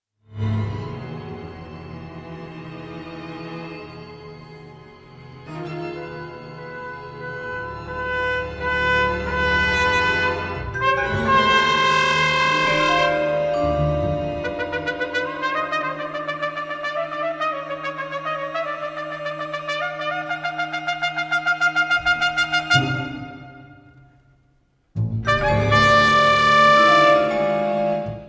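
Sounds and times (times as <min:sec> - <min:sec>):
trumpet and orchestra: 0:00.3 - 0:24.4, 0:25.0 - 0:28.2.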